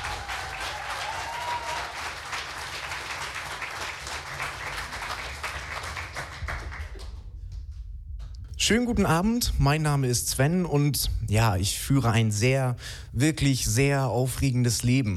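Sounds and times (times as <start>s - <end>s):
loud audience applause: 0.0s - 7.2s
speech: 8.6s - 15.1s.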